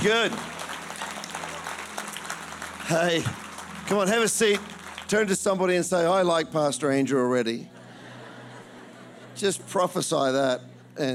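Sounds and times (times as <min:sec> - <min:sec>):
speech: 0:00.0 - 0:00.6, 0:02.9 - 0:07.8, 0:09.4 - 0:11.1
audience clapping: 0:00.0 - 0:06.4
laughter: 0:07.7 - 0:11.0.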